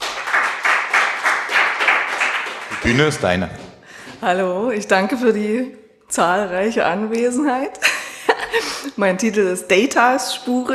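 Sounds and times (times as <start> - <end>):
audience applause: 0.0 - 3.6
speech: 2.8 - 7.9, 8.5 - 10.7.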